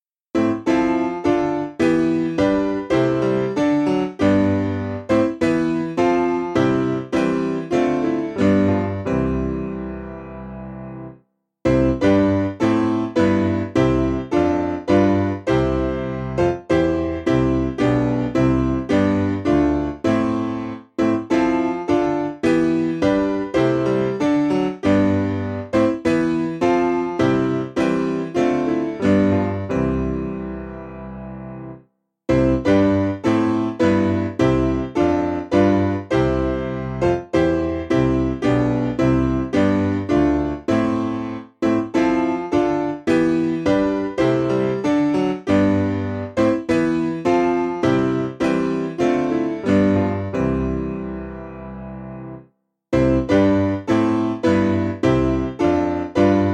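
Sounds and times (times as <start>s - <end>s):
piano: 0.0s - 56.5s.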